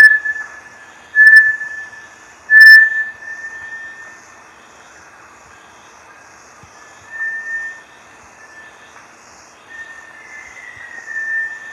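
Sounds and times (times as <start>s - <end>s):
Bartlett's tinamou calling with long pure whistled notes: 0.0s - 4.2s, 6.8s - 7.8s, 8.4s - 8.8s, 9.7s - 11.7s.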